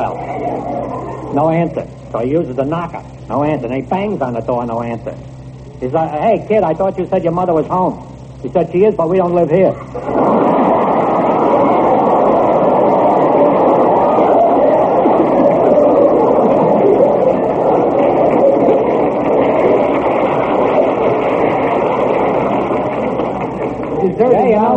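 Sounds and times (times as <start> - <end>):
speech: 1.3 - 10.4
large audience applause: 10.0 - 24.7.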